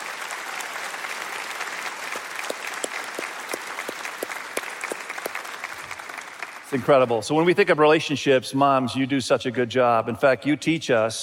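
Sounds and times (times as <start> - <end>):
audience applause: 0.0 - 7.2
speech: 6.7 - 11.2.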